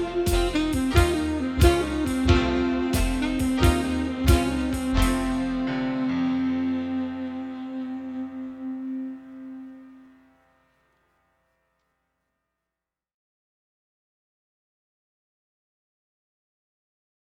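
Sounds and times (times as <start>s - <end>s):
slow and easy blues music: 0.0s - 10.0s.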